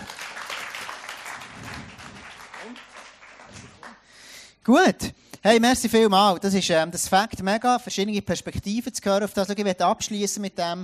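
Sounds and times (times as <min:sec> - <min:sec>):
audience applause: 0:00.0 - 0:04.0
speech: 0:04.7 - 0:10.8.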